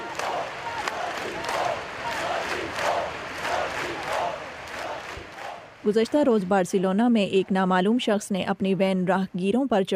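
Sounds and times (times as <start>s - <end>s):
mourning crowd chanting a slogan in unison: 0.0s - 8.0s
speech: 5.8s - 9.9s.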